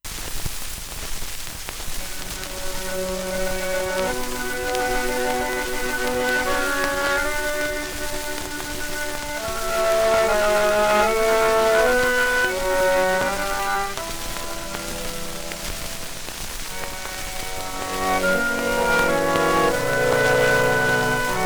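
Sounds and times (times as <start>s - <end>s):
polka music: 2.0s - 21.4s.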